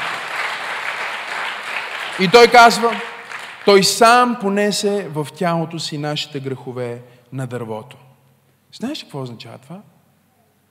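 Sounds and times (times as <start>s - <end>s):
crowd applauding: 0.0s - 4.3s
speech: 2.2s - 8.0s, 8.7s - 9.9s.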